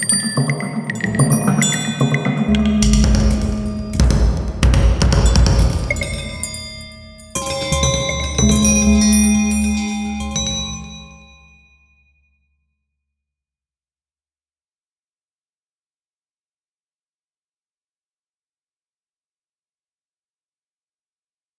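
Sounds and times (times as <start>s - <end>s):
percussion ensemble playing an interlude: 0.3s - 11.2s.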